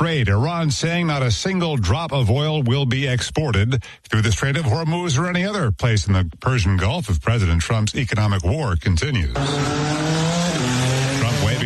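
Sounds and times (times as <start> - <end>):
speech: 0.0 - 10.4
presidential limousine the Beast engine droning on a Grand Prix race track in Washington, D.C.: 9.3 - 11.6.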